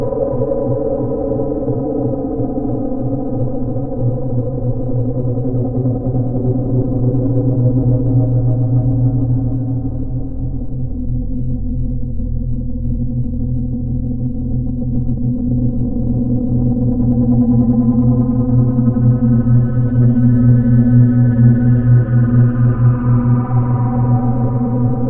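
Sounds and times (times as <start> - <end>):
low scorching drone: 0.0 - 25.0.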